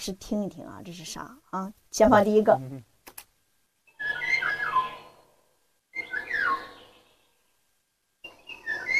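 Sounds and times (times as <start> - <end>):
speech: 0.0 - 2.9
birdsong recorded in nature: 3.8 - 8.9.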